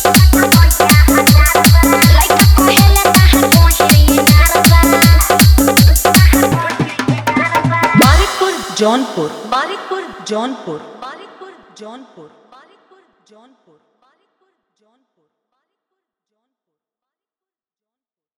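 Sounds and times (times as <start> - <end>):
dholak with hard bass: 0.0 - 10.6.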